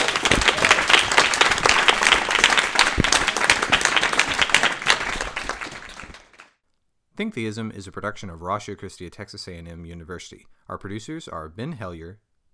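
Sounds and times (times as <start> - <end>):
round of applause: 0.0 - 6.6
speech: 7.2 - 12.5.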